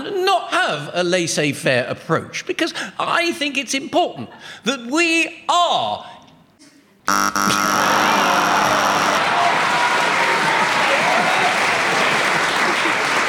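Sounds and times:
speech: 0.7s - 6.2s, 7.1s - 9.0s
game show challenge buzzer: 7.1s - 9.4s
audience applause: 7.9s - 13.2s.

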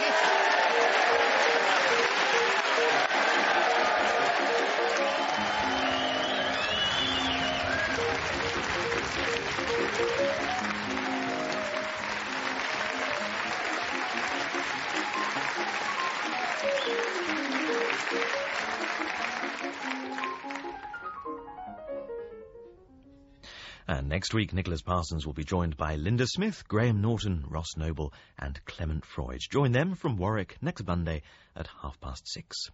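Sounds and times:
audience clapping and cheering in the Bonner Hall at Dundee University: 0.0s - 21.4s
melodic musical theme: 0.0s - 23.4s
speech: 24.3s - 32.7s.

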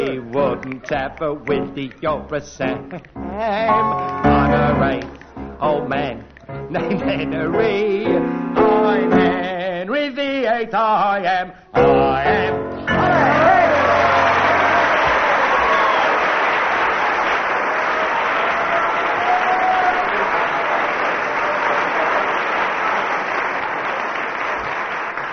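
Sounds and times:
speech: 0.2s - 13.1s
cheering: 12.9s - 25.3s
crowd applauding: 12.9s - 25.3s.

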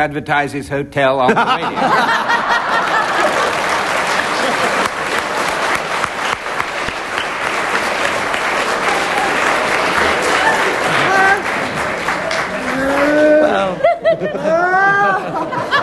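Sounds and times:
speech: 0.0s - 2.6s
laughter: 1.2s - 6.1s, 8.7s - 15.8s
audience applause: 2.1s - 13.8s.

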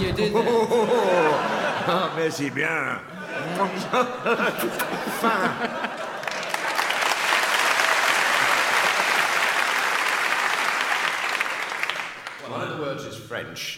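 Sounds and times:
speech: 0.0s - 6.0s, 12.7s - 13.7s
laughter: 0.0s - 7.2s
applause from a Yorkshire audience: 5.0s - 12.5s.

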